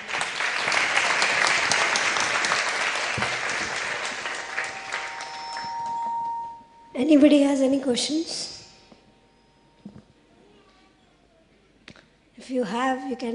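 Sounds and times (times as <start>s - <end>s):
audience applause: 0.0s - 6.3s
speech: 7.0s - 8.5s, 12.6s - 13.3s.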